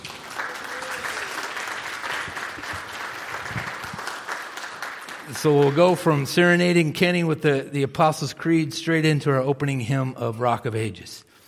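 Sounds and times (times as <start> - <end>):
audience applause: 0.0 - 6.2
speech: 5.3 - 11.3.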